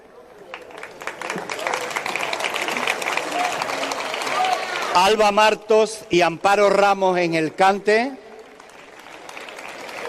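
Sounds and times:
applause: 0:00.4 - 0:05.5, 0:07.3 - 0:10.0
speech: 0:05.0 - 0:08.2.

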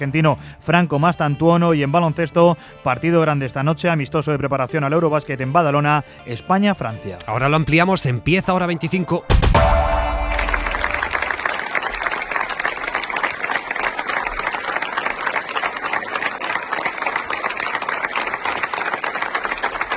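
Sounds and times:
speech: 0:00.0 - 0:09.7
brief low tone: 0:09.5 - 0:11.4
applause at a funeral: 0:10.0 - 0:19.9.

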